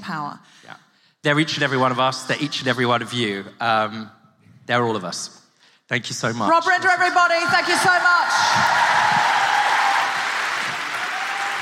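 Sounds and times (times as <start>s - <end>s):
speech: 0.1s - 9.5s
audience applause: 7.5s - 11.6s.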